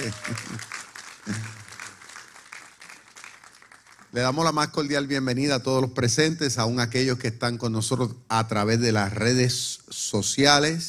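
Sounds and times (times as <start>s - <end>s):
speech: 0.0s - 0.5s, 4.1s - 10.8s
large crowd clapping: 0.0s - 4.6s.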